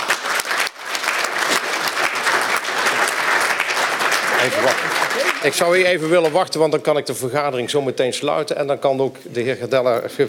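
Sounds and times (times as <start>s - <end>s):
council meeting audience applauding an alderman's installation: 0.0s - 6.4s
speech: 4.4s - 10.2s.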